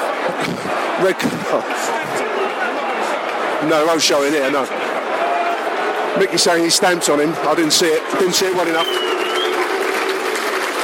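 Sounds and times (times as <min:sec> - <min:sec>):
round of applause: 0:00.0 - 0:06.9, 0:07.5 - 0:10.8
speech: 0:00.3 - 0:04.9, 0:06.1 - 0:09.4.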